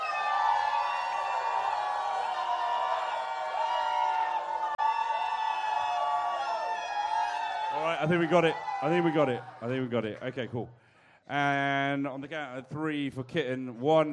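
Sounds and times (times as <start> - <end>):
audience shouting a vote: 0.0 - 9.8
speech: 7.8 - 14.1.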